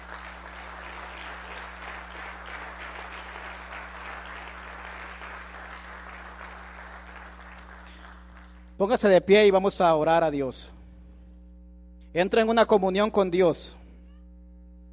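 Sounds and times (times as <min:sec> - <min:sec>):
audience applauding: 0:00.0 - 0:08.8
low steady hum: 0:00.0 - 0:14.9
speech: 0:08.8 - 0:10.8, 0:12.2 - 0:13.8.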